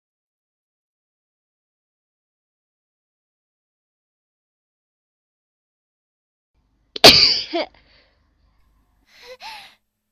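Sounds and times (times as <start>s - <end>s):
person sneezing: 7.0s - 7.8s.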